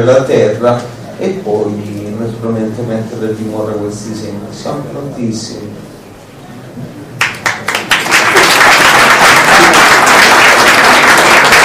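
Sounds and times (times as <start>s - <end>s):
speech: 0.0s - 6.0s
audience applauding: 7.2s - 11.6s.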